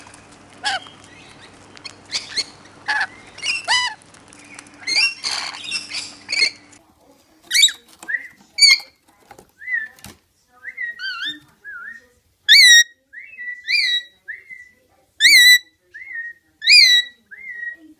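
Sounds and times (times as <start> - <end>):
rainbow lorikeet giving shrill call notes and whistles: 0.6 - 4.0, 4.8 - 6.7, 10.6 - 17.8.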